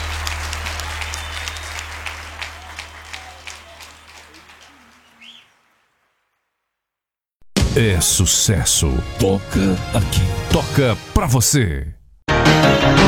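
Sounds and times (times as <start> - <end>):
crowd applause: 0.0 - 6.5
birdlike whistle: 1.0 - 2.2, 4.9 - 5.8
speech: 7.7 - 12.0.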